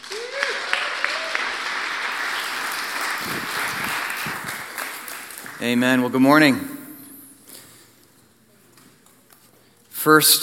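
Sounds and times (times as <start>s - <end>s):
church congregation applause welcoming a preacher at Harvest Ottawa: 0.0s - 6.8s
speech: 5.6s - 6.7s, 10.0s - 10.4s.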